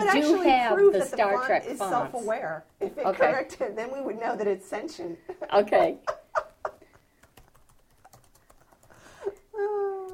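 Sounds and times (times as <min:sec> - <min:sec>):
speech: 0:00.1 - 0:06.2
typing on a computer keyboard: 0:07.0 - 0:09.5.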